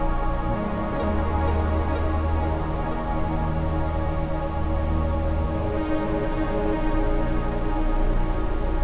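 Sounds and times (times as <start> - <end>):
ambient sound: 0.2 - 8.7.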